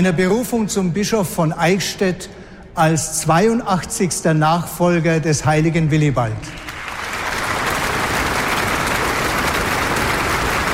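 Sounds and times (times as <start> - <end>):
speech: 0.0 - 6.7
long sustained applause for the new Eichstätt bishop: 6.5 - 10.7.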